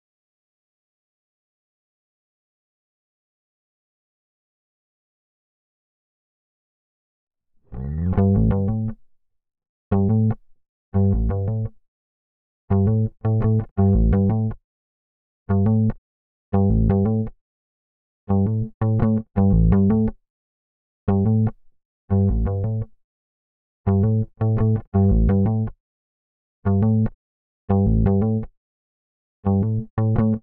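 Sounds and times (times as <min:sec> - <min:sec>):
bass guitar in C: 0:07.7 - 0:09.0, 0:09.9 - 0:10.4, 0:11.0 - 0:11.8, 0:12.7 - 0:14.6, 0:15.5 - 0:16.0, 0:16.6 - 0:17.3, 0:18.3 - 0:20.2, 0:21.1 - 0:22.9, 0:23.9 - 0:25.8, 0:26.7 - 0:28.5, 0:29.5 - 0:30.4.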